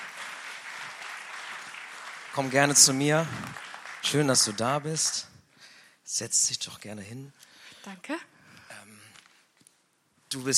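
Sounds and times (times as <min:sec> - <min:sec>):
audience applause: 0:00.0 - 0:05.3
speech: 0:02.4 - 0:05.3, 0:06.1 - 0:08.3, 0:10.3 - 0:10.5.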